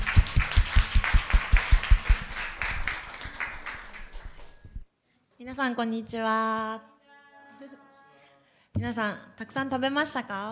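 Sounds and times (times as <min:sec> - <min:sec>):
audience applause: 0:00.0 - 0:04.8
speech: 0:05.6 - 0:06.9, 0:08.8 - 0:10.5.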